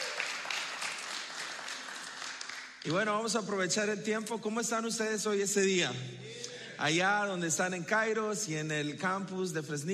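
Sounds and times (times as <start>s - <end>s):
audience applause for visiting friends at a Spanish-language gathering: 0.0s - 2.9s
speech: 2.8s - 9.9s.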